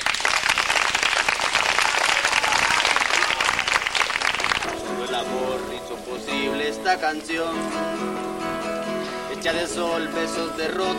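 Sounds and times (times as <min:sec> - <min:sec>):
audience applause: 0:00.0 - 0:04.8
speech: 0:05.2 - 0:08.3, 0:09.4 - 0:10.9.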